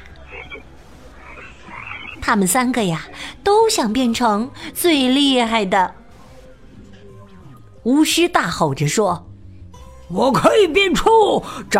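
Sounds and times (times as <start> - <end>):
frog croaking: 0.0 - 2.4
speech: 2.3 - 6.0, 7.9 - 9.3, 10.1 - 11.7.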